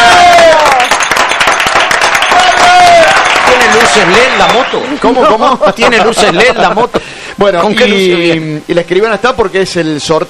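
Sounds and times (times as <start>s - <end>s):
audience applause: 0.0s - 5.4s
laughter: 3.5s - 7.1s
speech: 4.0s - 10.2s.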